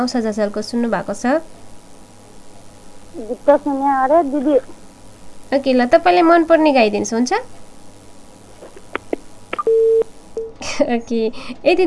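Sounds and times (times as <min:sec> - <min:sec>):
speech: 0:00.0 - 0:01.6, 0:03.1 - 0:04.8, 0:05.5 - 0:07.6, 0:10.8 - 0:11.8
short faint blips: 0:02.5 - 0:10.6
telephone beep after a caller hangs up: 0:09.6 - 0:10.5.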